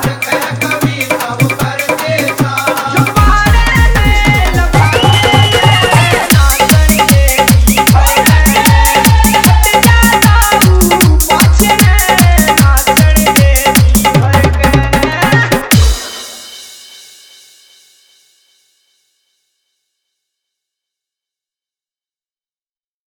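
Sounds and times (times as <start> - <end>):
Krishna bhajan dance mix with dholak and bass: 0.0 - 16.7.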